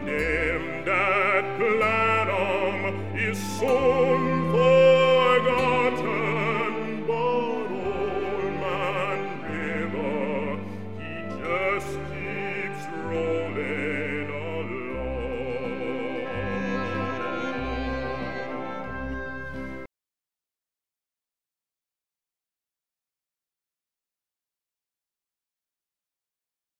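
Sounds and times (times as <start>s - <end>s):
bass: 0.0s - 19.9s.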